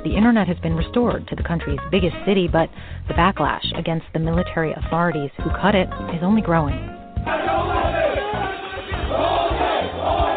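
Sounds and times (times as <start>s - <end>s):
speech: 0.0s - 8.0s
protest crowd in Yangon shouting anti-military slogans: 7.3s - 10.3s.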